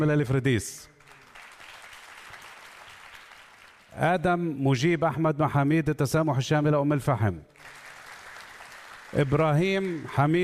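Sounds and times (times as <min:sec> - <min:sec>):
speech: 0:00.0 - 0:00.9, 0:04.0 - 0:07.8, 0:09.1 - 0:10.4
audience applause greeting student ambassadors at a ceremony: 0:01.0 - 0:04.0, 0:07.6 - 0:10.4.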